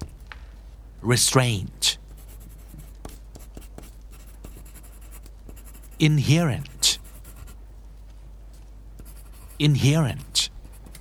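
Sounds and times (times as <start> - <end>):
speech: 1.0 - 2.0, 6.0 - 7.0, 9.6 - 10.4
pencil tip scratching across paper: 2.1 - 7.6, 9.0 - 10.9.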